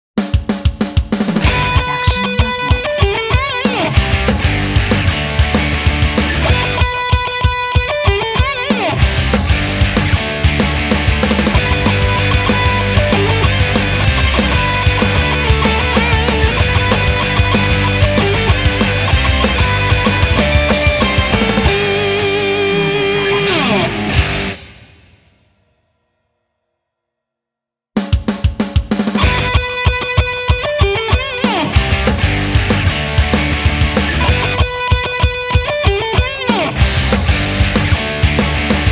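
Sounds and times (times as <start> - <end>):
American punk Christmas song: 0.2 - 25.4, 28.0 - 38.9.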